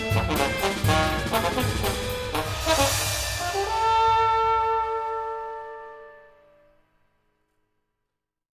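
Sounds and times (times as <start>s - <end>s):
trombone playing: 0.0s - 6.8s.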